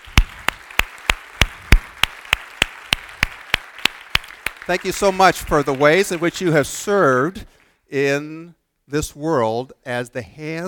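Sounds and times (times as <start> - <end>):
audience applause in sharp rhythmic claps: 0.0 - 7.8
speech: 4.7 - 10.6.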